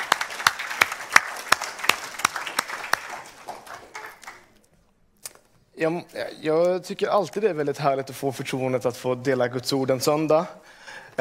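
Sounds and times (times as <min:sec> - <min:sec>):
crowd applauding: 0:00.0 - 0:04.6
speech: 0:05.8 - 0:11.2.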